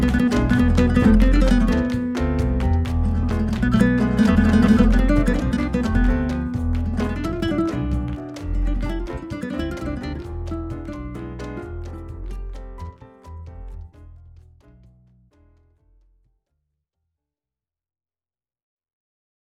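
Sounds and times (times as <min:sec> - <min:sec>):
nylon guitar playing Spanish-flavoured music: 0:00.0 - 0:12.9.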